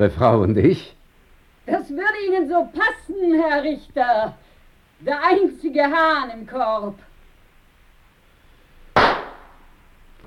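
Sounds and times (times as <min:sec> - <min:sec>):
speech: 0:00.0 - 0:01.0, 0:02.4 - 0:04.4, 0:05.0 - 0:07.1
pistol shots: 0:09.0 - 0:09.7.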